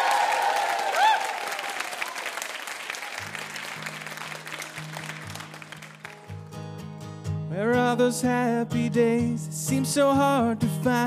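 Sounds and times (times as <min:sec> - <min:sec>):
audience applause for a VIP guest on a quiz show: 0:00.0 - 0:06.4
music: 0:03.2 - 0:11.0
speech: 0:07.6 - 0:11.0.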